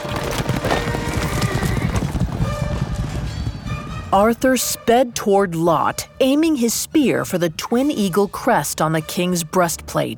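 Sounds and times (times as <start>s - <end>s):
horses charging at full gallop: 0.0s - 4.8s
speech: 4.1s - 10.1s.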